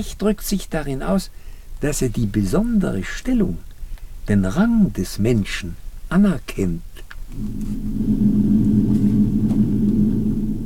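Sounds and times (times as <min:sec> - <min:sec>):
speech: 0:00.0 - 0:03.7, 0:04.3 - 0:09.1
rumble of thunder: 0:07.4 - 0:10.6.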